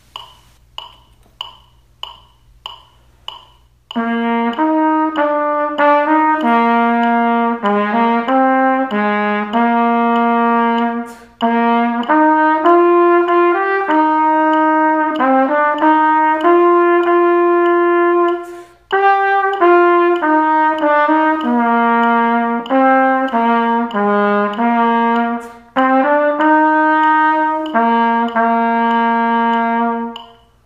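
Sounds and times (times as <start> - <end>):
solo trumpet: 3.9 - 30.6.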